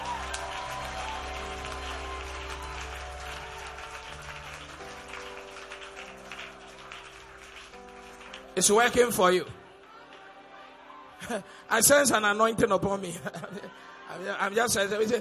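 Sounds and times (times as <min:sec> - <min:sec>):
crowd clapping in praise: 0:00.0 - 0:09.2
sustained low keyboard or organ chords: 0:00.0 - 0:13.5
speech: 0:08.6 - 0:09.6, 0:11.3 - 0:15.1.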